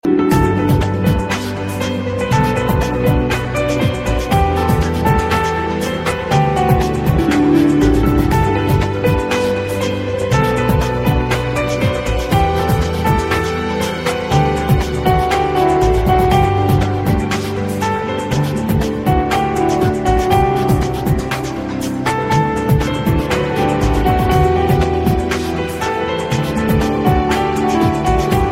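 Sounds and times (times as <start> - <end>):
piano: 0.0 - 28.5.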